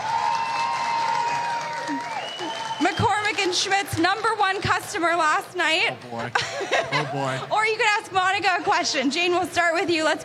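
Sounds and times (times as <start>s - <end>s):
audience cheering: 0.0s - 3.9s
audience applause: 0.0s - 4.8s
speech: 3.0s - 10.2s
laughter: 6.2s - 7.6s.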